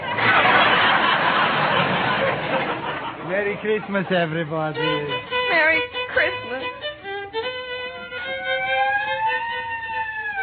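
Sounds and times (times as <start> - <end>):
laughter: 0.0 - 5.2
speech: 3.5 - 6.3
police squad car siren wailing: 7.9 - 10.4.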